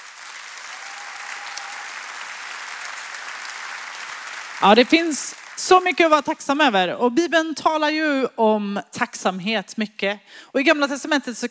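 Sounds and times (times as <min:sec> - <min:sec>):
warm applause: 0:00.0 - 0:06.2
speech: 0:04.6 - 0:11.5.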